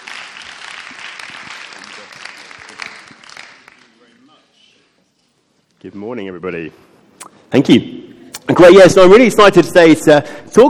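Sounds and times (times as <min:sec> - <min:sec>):
audience applause: 0:00.0 - 0:04.1
speech: 0:05.8 - 0:06.9, 0:07.5 - 0:10.6.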